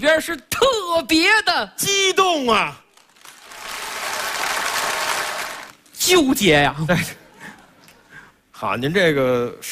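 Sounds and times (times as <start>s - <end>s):
speech: 0.0s - 2.8s, 6.0s - 7.2s, 8.6s - 9.7s
audience applause for performers coming on stage: 3.1s - 5.8s.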